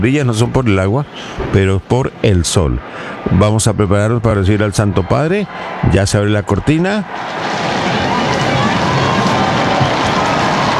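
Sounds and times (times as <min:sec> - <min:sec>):
speech: 0:00.0 - 0:07.8
crowd ovation for the pope: 0:02.7 - 0:10.7.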